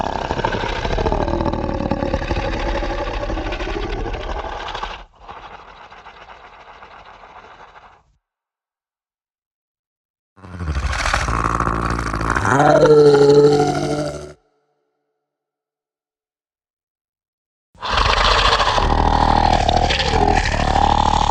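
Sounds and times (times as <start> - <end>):
monster sound effects: 0.0 - 8.0, 10.4 - 14.4, 17.8 - 21.2.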